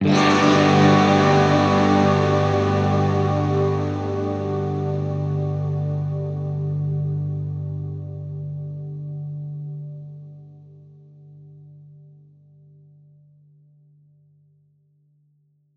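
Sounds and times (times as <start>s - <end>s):
guitar chords in G major: 0.0s - 11.4s.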